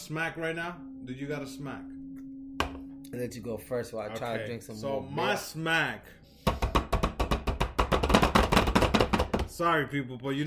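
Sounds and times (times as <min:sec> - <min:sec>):
speech: 0:00.1 - 0:02.0, 0:03.1 - 0:06.3, 0:09.5 - 0:10.4
rapid banging on a table: 0:06.4 - 0:09.5.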